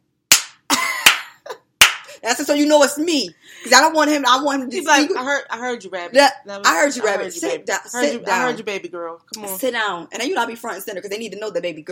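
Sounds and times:
hand claps: 0.3 - 2.1
speech: 2.2 - 11.9.

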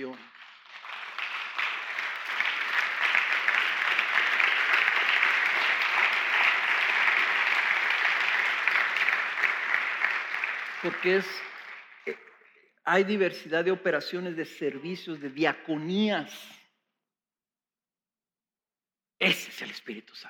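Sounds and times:
audience applause: 0.0 - 12.2
speech: 10.8 - 12.2, 12.8 - 16.6, 19.2 - 20.2.

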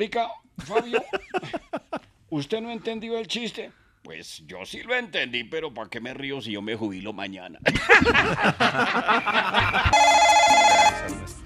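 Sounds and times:
speech: 0.0 - 1.7, 2.3 - 11.4
people laughing: 0.6 - 2.0, 7.7 - 10.2
telephone ringing: 9.6 - 11.2.

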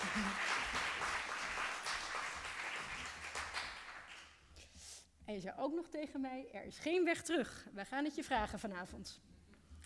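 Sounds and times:
audience applause: 0.0 - 4.3
speech: 0.2 - 0.5, 5.3 - 9.3.

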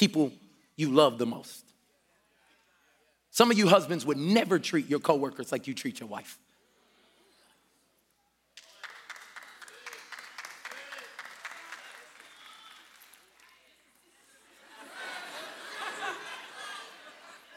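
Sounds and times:
speech: 0.0 - 1.7, 3.4 - 6.4
audience clapping: 8.6 - 15.2
crowd voices and laughter: 14.0 - 17.5.

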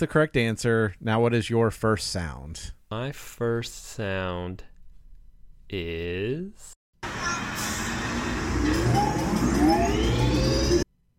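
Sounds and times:
speech: 0.0 - 4.7, 5.7 - 6.8
theme park roller coaster train rumbling: 7.1 - 10.8
whirring tone: 7.1 - 10.9.

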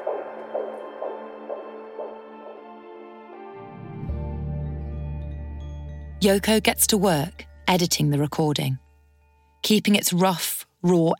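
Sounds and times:
fetal heartbeat from an ultrasound monitor: 0.0 - 2.6
speech: 6.2 - 8.8, 9.6 - 11.1.

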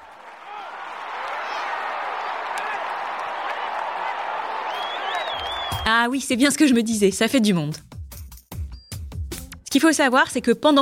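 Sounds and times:
audience applause: 0.0 - 5.9
scattered voices and cheers: 0.0 - 6.0
speech: 5.8 - 7.9, 9.7 - 10.8.

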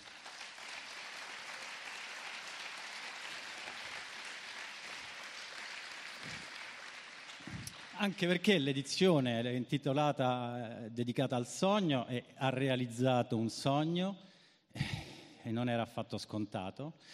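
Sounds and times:
audience applause: 0.0 - 8.5
speech: 8.0 - 14.9, 15.5 - 17.1.

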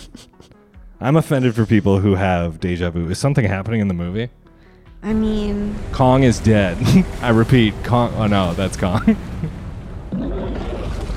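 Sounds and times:
speech: 1.0 - 9.6
steady low rumble: 5.0 - 11.1
huge splash of water, tidal wave: 5.7 - 11.1.

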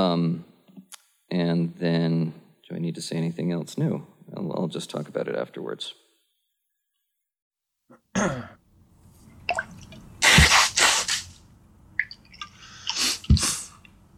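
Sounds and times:
speech: 0.0 - 0.5, 1.3 - 6.0, 8.2 - 8.6
sneezes: 10.2 - 11.4, 13.0 - 13.8.

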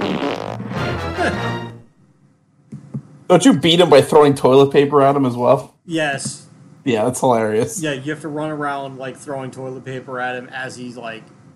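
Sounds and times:
fart sound effect: 0.0 - 1.5
speech: 1.2 - 1.6, 3.3 - 11.4
faint hum: 1.9 - 11.5.

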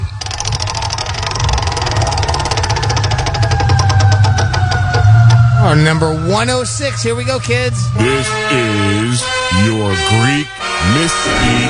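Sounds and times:
prize wheel spinning: 0.0 - 8.5
low rumble: 0.0 - 9.2
speech: 5.8 - 11.6.

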